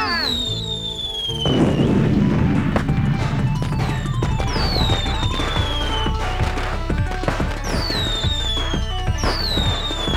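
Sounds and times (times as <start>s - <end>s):
fireworks crackling bursts and pops: 0.0s - 10.1s
whistling fireworks rockets: 0.0s - 10.1s.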